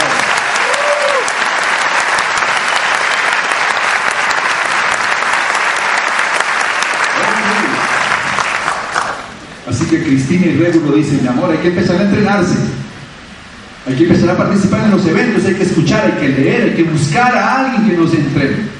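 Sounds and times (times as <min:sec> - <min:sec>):
audience applause: 0:00.0 - 0:09.3
speech: 0:09.9 - 0:12.7, 0:13.9 - 0:18.7.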